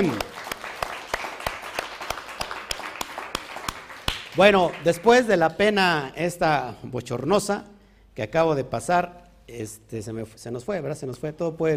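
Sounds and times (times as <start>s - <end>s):
speech: 0.0s - 0.3s, 4.4s - 11.7s
audience applause: 0.0s - 5.2s.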